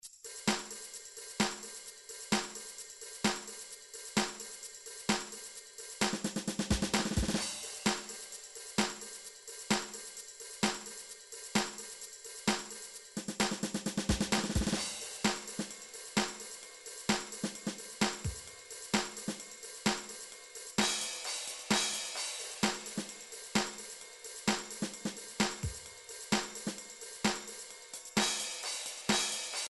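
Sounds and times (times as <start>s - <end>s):
midi drums: 0.2s - 29.6s.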